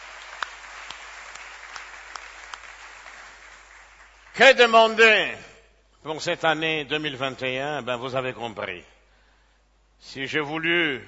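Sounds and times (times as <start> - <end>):
church congregation applauding to acclaim the Lord: 0.0 - 5.2
speech: 4.4 - 8.9, 10.0 - 11.0.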